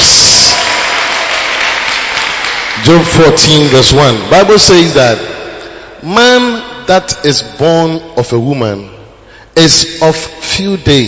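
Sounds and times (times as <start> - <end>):
audience clapping: 0.0 - 4.4
speech: 2.9 - 5.3, 6.0 - 9.0, 9.6 - 11.0.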